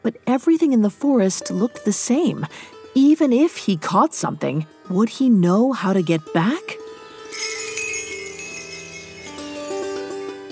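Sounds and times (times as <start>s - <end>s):
speech: 0.0s - 6.8s
bells jingling in the forest: 7.3s - 10.2s.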